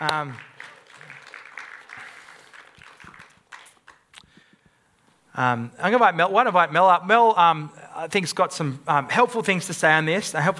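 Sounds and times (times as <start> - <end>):
speech: 0.0 - 0.6, 5.4 - 10.5
audience applause: 0.0 - 4.1.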